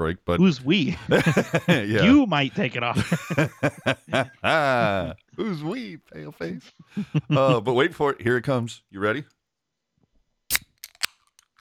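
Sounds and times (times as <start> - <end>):
speech: 0.0 - 9.4
laughter: 0.7 - 8.4
Diet Coke can cracking open: 10.5 - 11.5.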